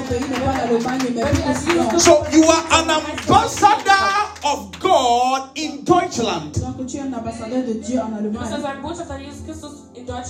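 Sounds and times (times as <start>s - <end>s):
audience clapping hands: 0.0s - 5.4s
speech: 0.1s - 10.2s.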